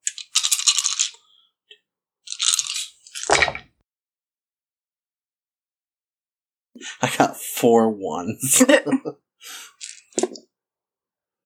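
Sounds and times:
dice being rolled: 0.0s - 1.2s, 2.3s - 3.6s, 9.8s - 10.4s
speech: 6.8s - 9.6s.

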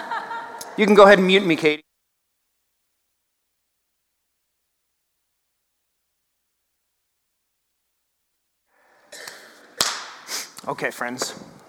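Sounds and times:
laughter: 0.0s - 1.0s
speech: 0.8s - 1.9s, 10.8s - 11.6s
person blowing nose into a tissue: 9.1s - 10.6s.

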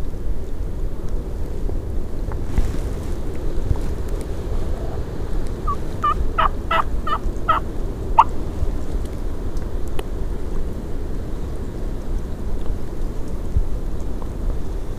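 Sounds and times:
wind noise: 0.0s - 14.9s
wild turkey gobbling: 5.6s - 8.3s.

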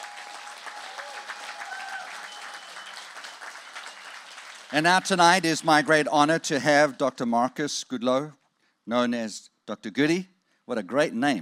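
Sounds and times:
round of applause: 0.0s - 6.1s
speech: 4.7s - 11.4s.

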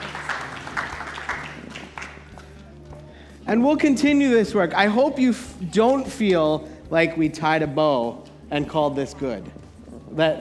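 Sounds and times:
audience applause: 0.0s - 2.6s
speech: 3.5s - 10.3s.

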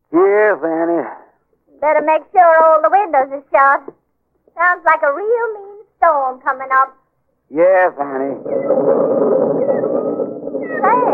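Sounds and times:
speech: 0.5s - 0.8s, 1.8s - 4.0s, 4.6s - 9.3s
kittens mewing: 8.0s - 11.1s.

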